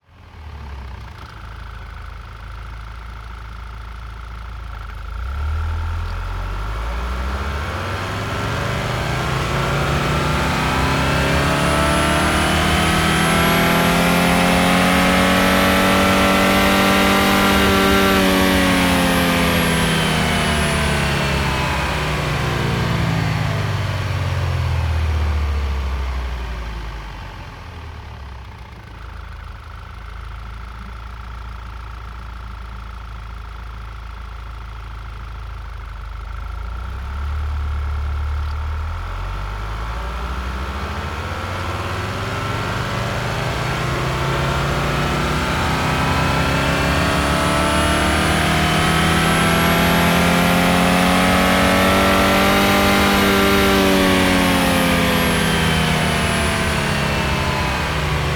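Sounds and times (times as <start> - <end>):
Audi A4 allroad 2.0 TFSI engine revving through rpm ramps: 5.1 - 26.9, 36.8 - 58.3.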